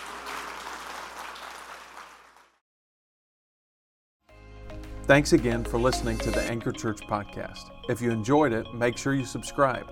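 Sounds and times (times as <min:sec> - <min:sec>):
audience clapping hands: 0:00.0 - 0:02.6
speech: 0:05.1 - 0:09.9.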